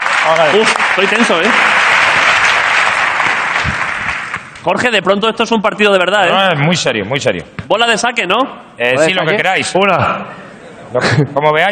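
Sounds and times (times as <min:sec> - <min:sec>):
crowd applause: 0:00.0 - 0:04.7
speech: 0:00.3 - 0:01.8, 0:04.6 - 0:11.7
laughter: 0:10.0 - 0:11.7.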